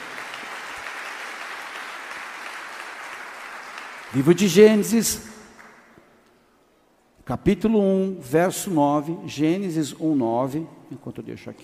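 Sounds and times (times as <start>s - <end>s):
audience applause: 0.0s - 4.4s
speech: 4.1s - 5.3s, 7.3s - 11.6s.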